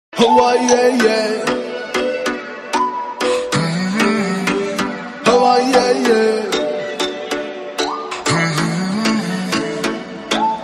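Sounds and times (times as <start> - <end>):
super cute background music ringtone: 0.1 - 10.6.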